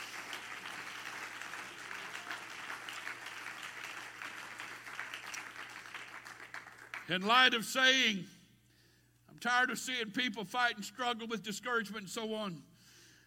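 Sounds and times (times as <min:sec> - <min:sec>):
crowd clapping: 0:00.0 - 0:07.3
speech: 0:07.1 - 0:08.4, 0:09.4 - 0:12.7.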